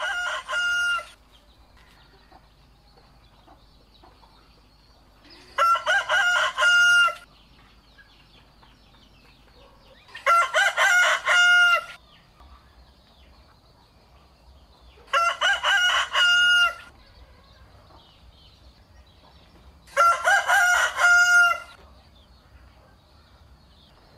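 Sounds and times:
rooster crowing: 0:00.0 - 0:01.2, 0:05.5 - 0:07.3, 0:10.2 - 0:12.0, 0:15.1 - 0:16.9, 0:19.9 - 0:21.8.

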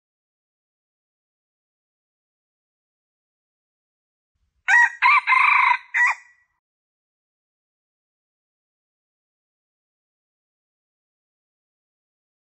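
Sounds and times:
Red junglefowl crowing: 0:04.7 - 0:06.3.

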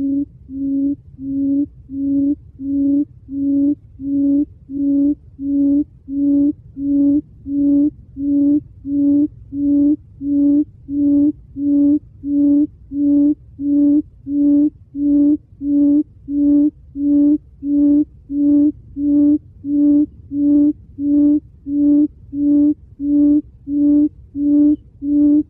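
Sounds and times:
quail hooting: 0:00.0 - 0:25.4.

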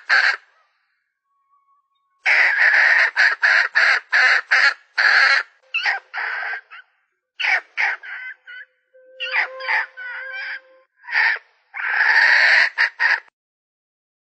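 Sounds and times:
Red junglefowl hen cackling: 0:02.3 - 0:13.3.

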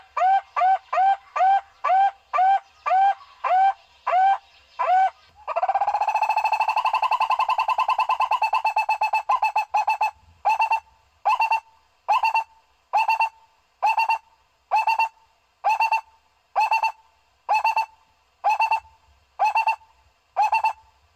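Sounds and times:
owl hooting: 0:00.0 - 0:21.0.

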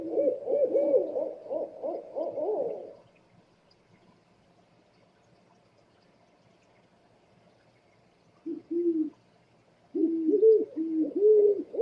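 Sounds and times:
scops owl hooting: 0:00.0 - 0:03.0, 0:08.4 - 0:09.2, 0:09.9 - 0:11.8.

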